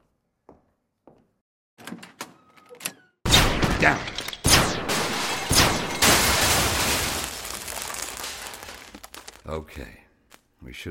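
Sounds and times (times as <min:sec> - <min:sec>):
blaster fire from a door-triggered rig: 0:03.3 - 0:07.4
speech: 0:03.8 - 0:04.1, 0:09.5 - 0:10.0, 0:10.6 - 0:10.8.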